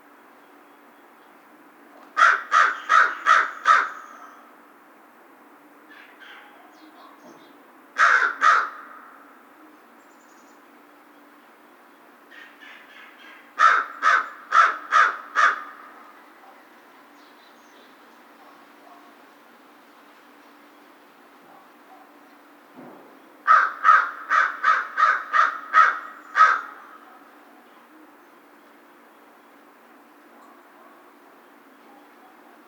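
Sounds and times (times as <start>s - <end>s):
American crow cawing: 2.2s - 4.5s, 8.0s - 9.2s, 12.3s - 16.0s, 23.4s - 27.0s.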